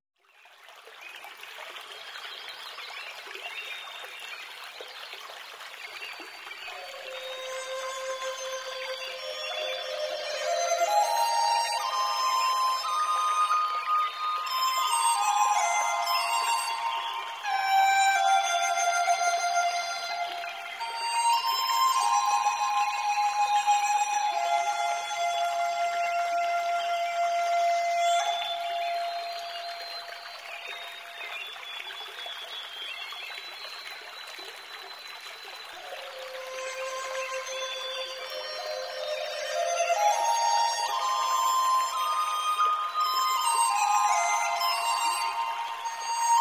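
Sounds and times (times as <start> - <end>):
meditation music: 6.6 - 31.4, 35.8 - 46.3.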